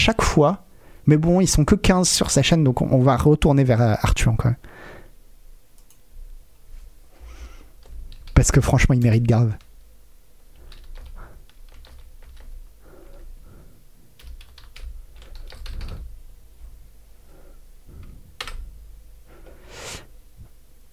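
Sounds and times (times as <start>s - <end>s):
speech: 0.0s - 4.7s, 8.4s - 9.6s
typing on a computer keyboard: 7.8s - 8.4s, 10.6s - 12.5s, 14.2s - 16.1s, 18.4s - 18.7s.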